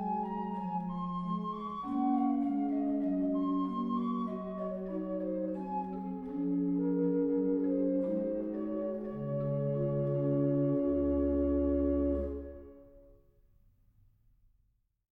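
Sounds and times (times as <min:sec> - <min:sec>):
pastorale played on an organ with tremulant: 0:00.0 - 0:12.8.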